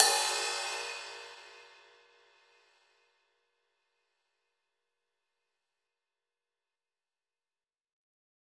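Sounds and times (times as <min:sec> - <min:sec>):
crash cymbal struck with brush: 0:00.0 - 0:02.0.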